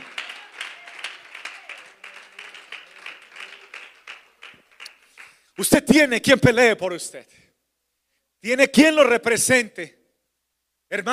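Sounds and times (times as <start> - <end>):
audience applause: 0.0 - 5.4
speech: 5.6 - 7.4, 8.4 - 10.0, 10.9 - 11.1.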